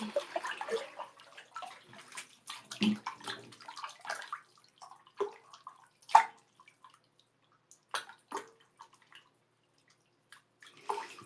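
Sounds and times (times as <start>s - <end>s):
water sloshing and splashing in a rather full bathtub: 0.0s - 11.2s.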